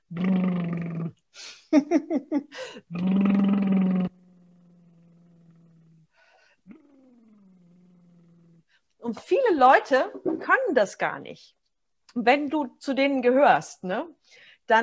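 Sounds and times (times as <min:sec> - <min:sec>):
person making lip-and-tongue trills like a motorbike, vocal warm-up: 0:00.0 - 0:01.4, 0:02.9 - 0:08.6
person humming low steady hum: 0:00.0 - 0:02.0, 0:02.6 - 0:08.6
speech: 0:00.1 - 0:00.4, 0:01.4 - 0:03.4, 0:09.6 - 0:11.6, 0:12.2 - 0:14.8.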